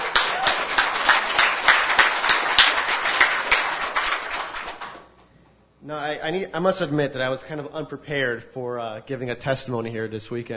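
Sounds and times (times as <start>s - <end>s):
audience applause: 0.0s - 5.1s
speech: 5.9s - 10.5s.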